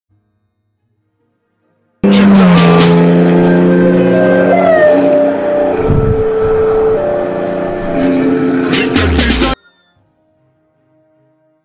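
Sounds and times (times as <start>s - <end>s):
bass boosted lofi ringtone: 2.0s - 10.0s.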